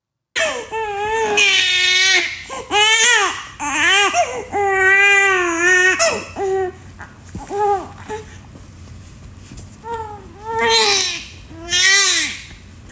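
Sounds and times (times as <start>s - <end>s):
baby crying: 0.4s - 6.8s, 9.9s - 12.4s.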